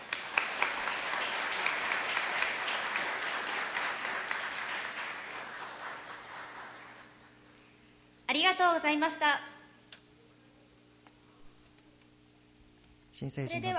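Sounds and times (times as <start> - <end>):
audience applause: 0.0 - 7.2
speech: 8.5 - 9.5, 13.2 - 13.7.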